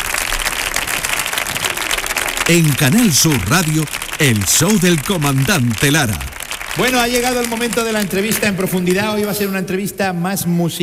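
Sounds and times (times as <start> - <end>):
audience applause: 0.0 - 9.5
speech: 2.5 - 10.8.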